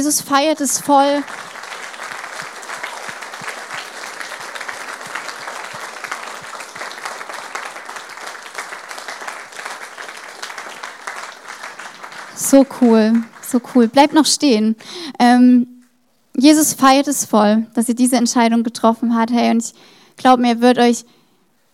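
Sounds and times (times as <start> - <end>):
speech: 0.0 - 1.6, 12.5 - 15.7, 16.4 - 21.2
audience applause: 0.0 - 14.4.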